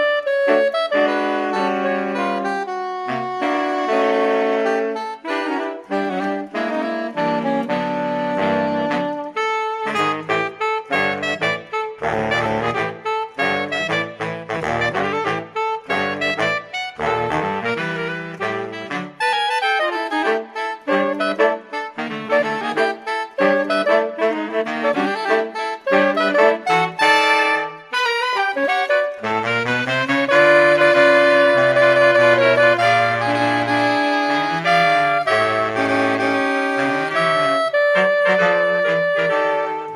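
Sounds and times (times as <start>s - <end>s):
saxophone quartet playing: 0.0s - 39.9s.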